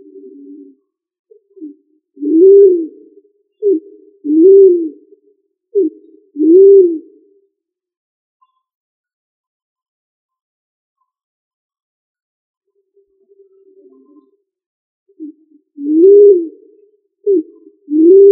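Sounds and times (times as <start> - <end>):
pigeon cooing: 0.0 - 5.2, 5.8 - 7.2, 15.2 - 18.3.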